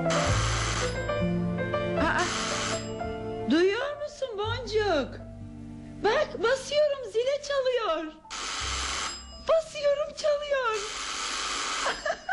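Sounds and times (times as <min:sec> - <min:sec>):
doorbell buzzing: 0:00.1 - 0:01.4, 0:02.2 - 0:03.3, 0:08.3 - 0:09.5, 0:10.7 - 0:12.2
people talking: 0:03.5 - 0:05.2, 0:06.1 - 0:08.2, 0:09.5 - 0:10.9.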